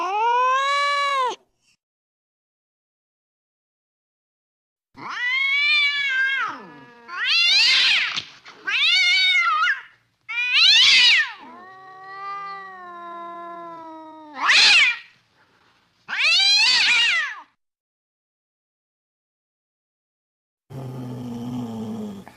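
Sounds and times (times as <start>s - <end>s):
cat meowing: 0.0s - 1.4s, 5.0s - 15.1s, 16.1s - 17.5s.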